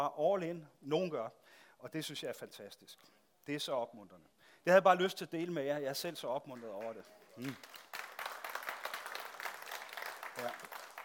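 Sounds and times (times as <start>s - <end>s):
speech: 0.0s - 8.1s, 10.4s - 10.7s
audience clapping: 6.5s - 11.0s.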